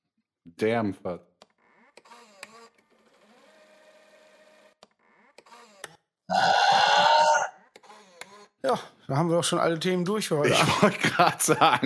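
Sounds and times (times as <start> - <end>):
speech: 0.5 - 1.3, 8.7 - 11.8
burp: 6.3 - 7.5
laughter: 10.4 - 11.8.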